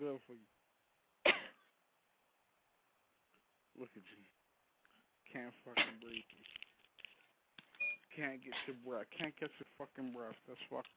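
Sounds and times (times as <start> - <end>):
person coughing harshly from smoking too much: 1.3 - 1.7, 5.8 - 6.0
speech: 3.8 - 4.4, 5.3 - 6.6, 8.2 - 10.9.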